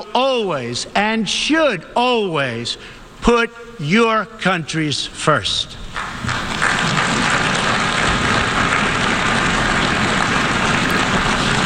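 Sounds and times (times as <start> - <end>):
speech: 0.1 - 6.5
audience applause in a large hall: 6.0 - 11.6.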